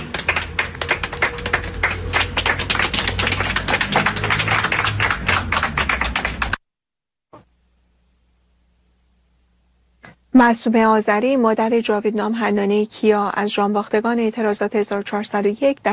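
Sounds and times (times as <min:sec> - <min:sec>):
crowd clapping at a memorial gathering for protest victims: 0:00.0 - 0:06.6
speech: 0:10.4 - 0:15.9.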